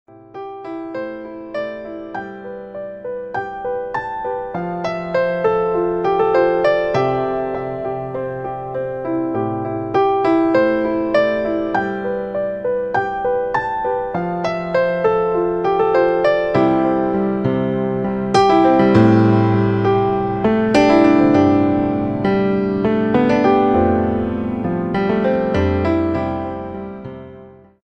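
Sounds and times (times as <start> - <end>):
romantic piano instrumental ringtone: 0.1 - 27.6.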